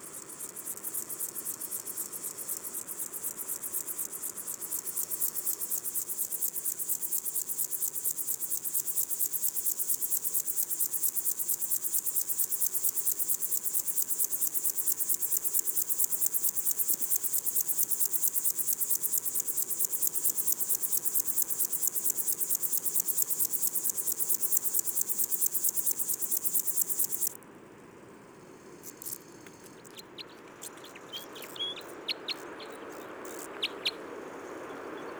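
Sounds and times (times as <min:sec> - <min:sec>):
criquet des adrets mountain grasshopper stridulating: 0:00.0 - 0:27.4, 0:28.6 - 0:35.0.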